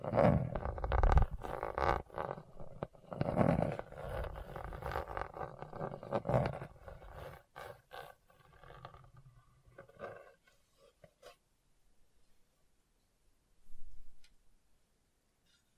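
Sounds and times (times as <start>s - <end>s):
scratching across a rough surface: 0.0s - 11.4s.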